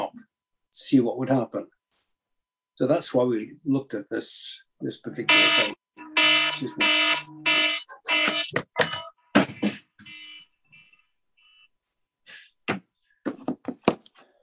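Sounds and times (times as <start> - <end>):
speech: 0.8 - 1.8, 2.8 - 5.8, 6.6 - 7.4
cell phone ringing: 5.2 - 11.7.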